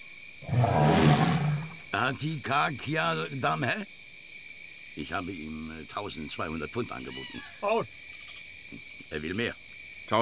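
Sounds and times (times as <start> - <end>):
speech: 0.4 - 1.2, 2.0 - 4.0, 5.0 - 8.1, 8.7 - 10.2
elephant roaring: 0.4 - 1.8.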